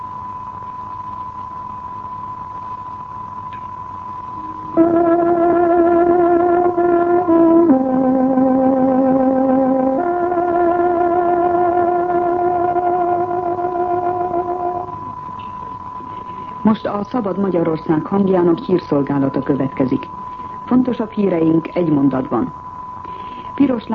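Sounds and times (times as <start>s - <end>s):
tárogató playing a radio time signal: 4.4s - 15.0s
speech: 17.0s - 22.6s, 23.6s - 23.9s.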